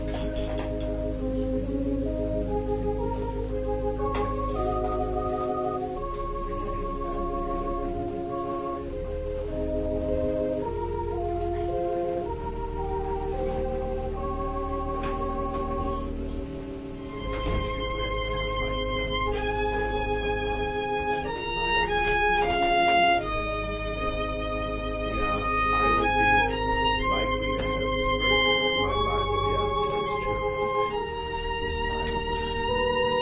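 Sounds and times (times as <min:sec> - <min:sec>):
organ playing a prelude: 0:00.0 - 0:33.2
violin playing a prelude: 0:00.0 - 0:33.2.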